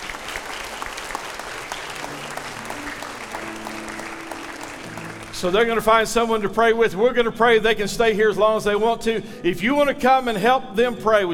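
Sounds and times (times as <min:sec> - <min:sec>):
audience clapping hands: 0:00.0 - 0:06.1
speech: 0:05.4 - 0:11.3.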